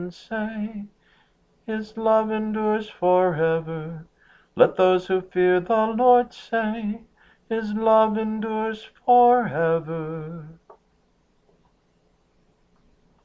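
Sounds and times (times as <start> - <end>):
psalm tone VIII chant: 0.0 - 0.9, 1.7 - 10.6.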